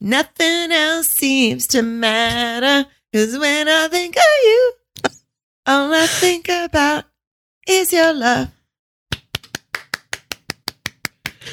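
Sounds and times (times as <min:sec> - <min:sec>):
speech: 0:00.0 - 0:04.8, 0:05.7 - 0:07.1, 0:07.7 - 0:08.6
single quiet hand clap: 0:09.1 - 0:11.5.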